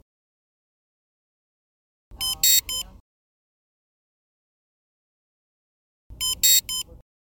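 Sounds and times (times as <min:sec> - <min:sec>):
alarm: 0:02.2 - 0:02.9, 0:06.2 - 0:07.0.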